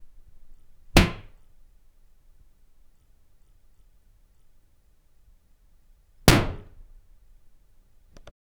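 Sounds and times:
cell door slamming shut: 1.0 - 1.4, 6.3 - 6.8.

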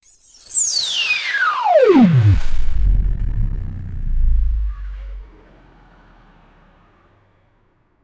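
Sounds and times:
video transition sound: 1.9 - 5.6.

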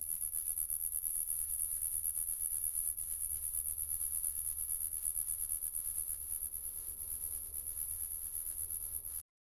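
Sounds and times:
insect wings buzzing: 0.0 - 9.2.

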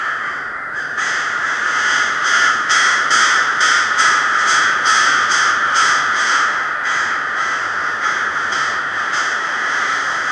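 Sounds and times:
flock of crows in a dense forest: 0.0 - 10.3.

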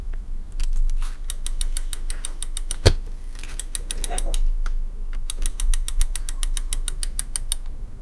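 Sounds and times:
screwing while attaching a new seat: 0.2 - 7.8.

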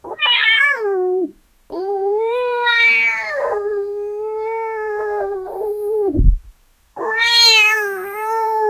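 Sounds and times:
cat meowing: 0.1 - 0.8, 1.7 - 5.9, 7.0 - 8.6.

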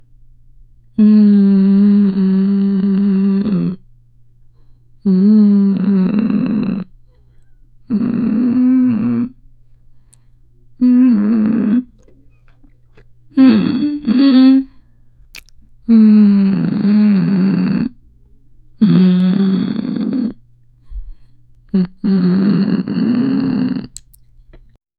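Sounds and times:
woman humming with mouth covered: 1.0 - 3.8, 5.0 - 6.9, 7.8 - 9.4, 10.8 - 12.6, 13.3 - 14.8, 15.8 - 18.0, 18.8 - 20.4, 21.7 - 24.1.

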